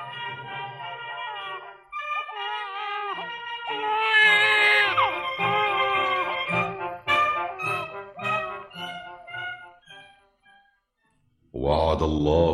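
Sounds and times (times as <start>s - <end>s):
newborn baby crying: 0.1s - 7.9s
speech: 12.0s - 12.5s.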